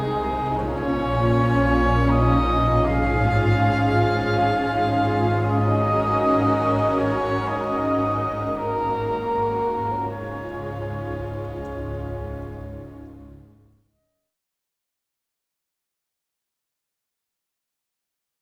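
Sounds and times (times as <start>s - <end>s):
English horn: 0.0s - 13.7s.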